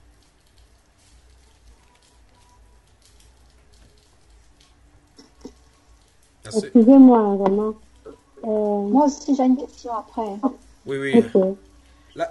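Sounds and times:
rain falling outside: 0.0 - 12.3
speech: 6.5 - 7.8, 8.9 - 12.3.

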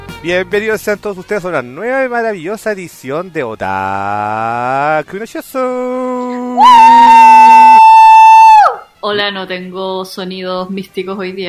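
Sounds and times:
speech: 0.2 - 7.1, 9.0 - 11.4
enthusiastic shout: 6.4 - 8.9.

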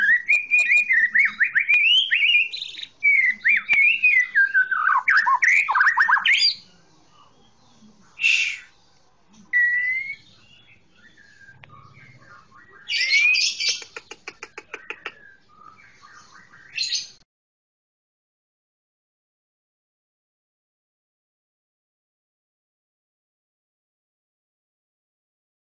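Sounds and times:
Oriental magpie-robin song with ticking rattles and upward-slurred whistles: 0.0 - 6.6, 9.5 - 17.2.

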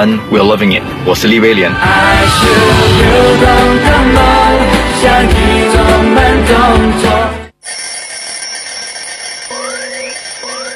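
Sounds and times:
speech: 0.0 - 7.4
alarm clock ringing: 7.6 - 10.7.

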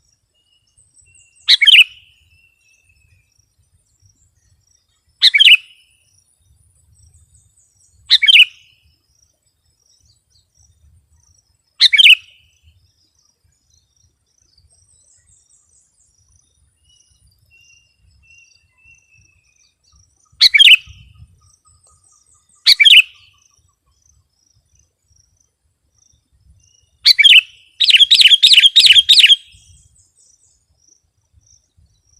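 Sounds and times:
Sooty-headed bulbul singing bubbly phrases: 1.1 - 2.0, 5.2 - 5.7, 7.8 - 8.7, 11.8 - 12.4, 20.1 - 23.4, 26.8 - 30.1.

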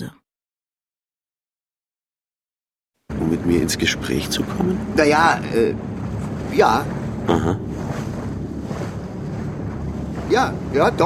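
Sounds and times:
low rumble: 3.1 - 11.0
wind and water rush of a boat travelling up a river: 3.1 - 11.0
speech: 3.3 - 5.9, 6.5 - 7.9, 10.3 - 11.0.

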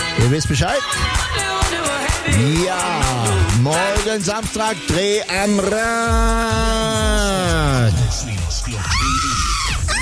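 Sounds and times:
speech: 0.1 - 8.4
person screaming with joy: 8.7 - 10.0.

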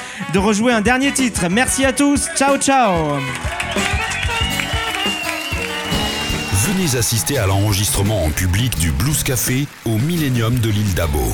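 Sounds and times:
speech: 0.2 - 4.0, 6.7 - 11.3
audience applause at a live blues show: 3.0 - 11.3.

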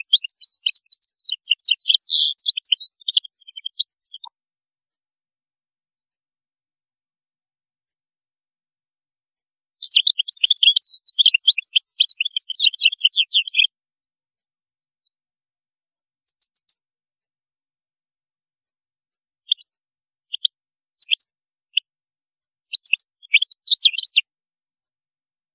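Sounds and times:
European goldfinch twittering song: 0.0 - 4.3, 9.8 - 13.7, 16.3 - 16.8, 20.3 - 21.3, 22.7 - 24.3.

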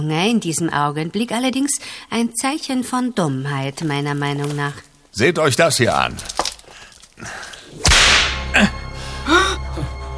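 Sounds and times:
speech: 0.0 - 6.4, 7.2 - 7.8, 8.6 - 9.4
whip crack: 7.8 - 8.5.

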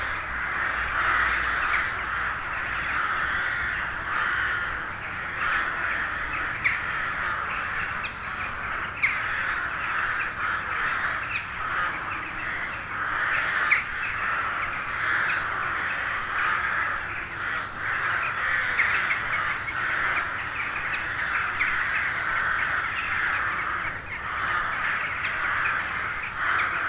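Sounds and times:
carrion crow flock cawing: 0.0 - 26.8.

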